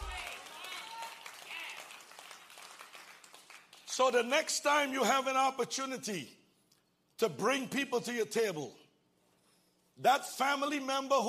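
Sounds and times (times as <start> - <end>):
crowd audience clapping: 0.0 - 4.3
speech: 4.0 - 6.4, 7.2 - 8.8, 10.0 - 11.2.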